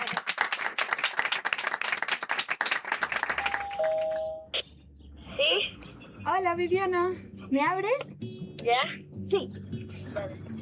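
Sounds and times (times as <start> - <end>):
studio audience applauding: 0.0 - 4.1
speech: 6.4 - 9.6, 10.2 - 10.4.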